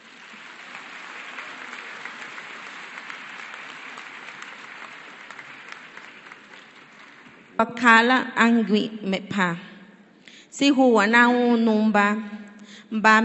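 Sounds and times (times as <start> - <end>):
strong applause: 0.0 - 7.6
speech: 7.6 - 9.7, 10.6 - 13.2.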